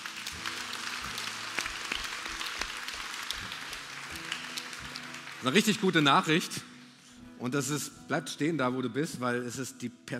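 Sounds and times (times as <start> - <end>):
audience applause: 0.0 - 6.8
speech: 5.4 - 6.7, 7.4 - 10.1.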